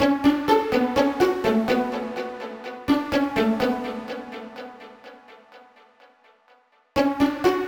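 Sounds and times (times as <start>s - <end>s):
pizzicato strings in B minor at 125 bpm: 0.0s - 5.6s.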